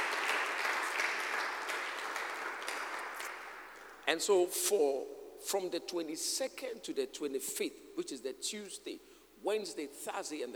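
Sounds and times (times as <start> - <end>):
audience clapping hands: 0.0 - 4.0
speech: 4.1 - 10.5.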